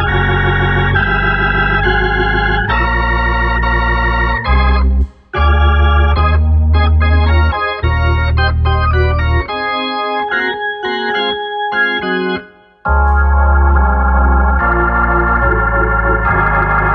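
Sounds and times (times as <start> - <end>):
gospel music on a Hammond organ: 0.0 - 16.9.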